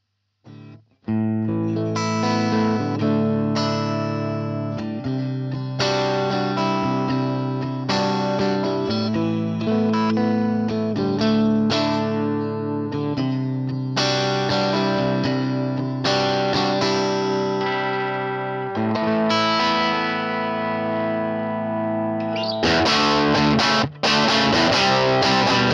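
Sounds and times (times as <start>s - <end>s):
Stratocaster electric guitar: 0.5s - 25.7s.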